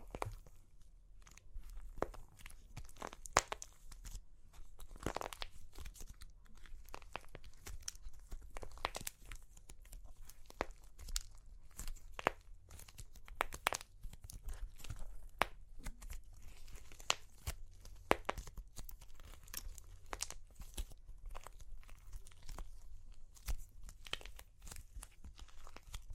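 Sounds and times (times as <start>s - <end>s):
super crunchy clay cracking: 0.0s - 26.1s.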